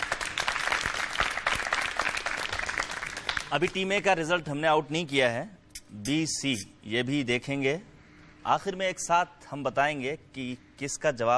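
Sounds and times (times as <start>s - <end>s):
audience applause: 0.0s - 3.5s
speech: 3.5s - 11.3s.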